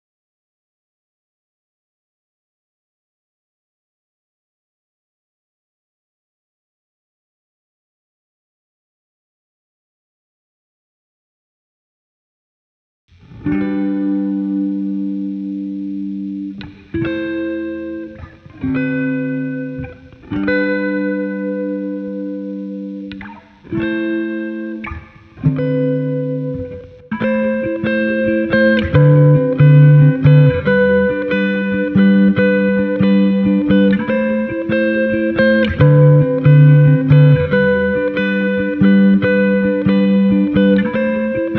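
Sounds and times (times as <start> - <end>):
guitar: 13.1 - 41.5.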